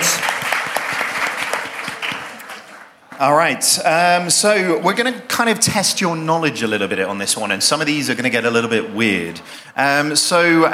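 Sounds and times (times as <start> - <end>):
crowd applause: 0.0 - 3.1
speech: 3.2 - 10.7.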